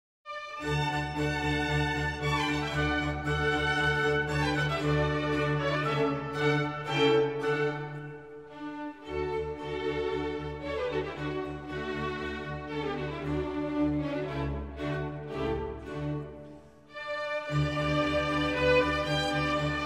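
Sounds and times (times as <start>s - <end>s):
violin concerto in D: 0.3s - 19.8s.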